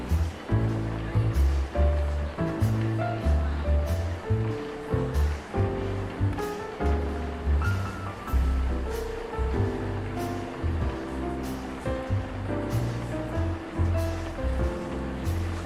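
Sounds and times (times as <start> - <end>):
cafe ambience: 0.0 - 15.6
jazz cafe music mix: 0.0 - 15.6
rain ambience: 0.0 - 15.6.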